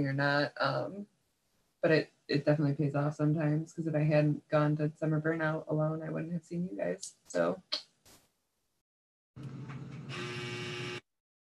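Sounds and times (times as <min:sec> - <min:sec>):
speech: 0:00.0 - 0:01.1, 0:01.8 - 0:07.9
clothes dryer buzzer signalling the end of its cycle: 0:09.4 - 0:11.1.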